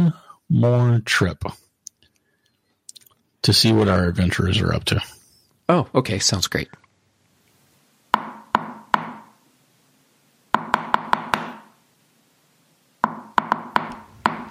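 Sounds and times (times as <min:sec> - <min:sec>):
speech: 0:00.1 - 0:01.6, 0:03.4 - 0:06.8
knocking on a door: 0:08.2 - 0:09.3, 0:10.6 - 0:11.7, 0:13.0 - 0:14.4.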